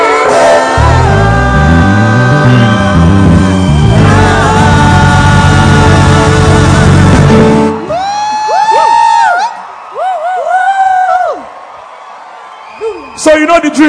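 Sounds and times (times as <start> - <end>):
murmur of cheering: 0.0 - 6.8, 7.8 - 13.8
crowd roaring: 0.0 - 13.2
scattered individual whoops and yells: 7.8 - 13.3.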